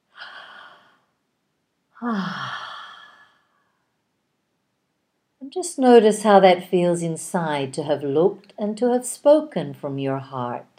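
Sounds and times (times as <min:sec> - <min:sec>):
deep breath: 0:00.1 - 0:01.2, 0:02.0 - 0:03.9
speech: 0:02.0 - 0:02.6, 0:05.5 - 0:10.7.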